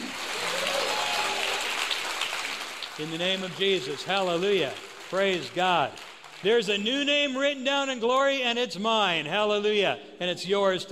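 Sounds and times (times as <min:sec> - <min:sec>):
audience clapping: 0:00.0 - 0:08.4
speech: 0:03.0 - 0:10.9.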